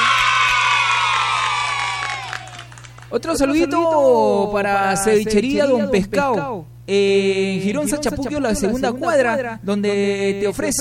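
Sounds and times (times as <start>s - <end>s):
crowd applauding and cheering: 0.0s - 3.2s
speech: 3.1s - 10.8s.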